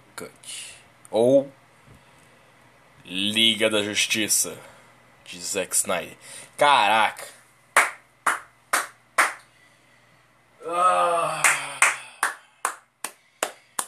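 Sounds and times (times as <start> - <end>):
speech: 0.2 - 1.6, 3.1 - 4.7, 5.3 - 7.4
hand clapping: 7.8 - 9.5, 11.4 - 13.8
loud drawn-out vocal exclamation: 10.6 - 12.2.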